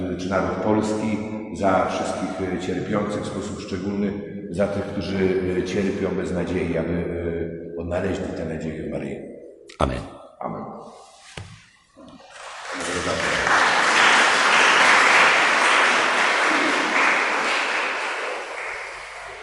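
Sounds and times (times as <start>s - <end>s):
speech: 0.2s - 11.0s
vocal sounds: 9.7s - 11.4s, 12.0s - 13.4s
audience applause: 12.2s - 19.4s.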